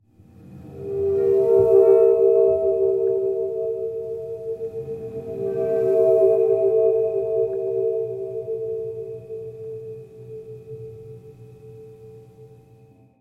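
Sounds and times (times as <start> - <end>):
train: 0.2 - 10.2.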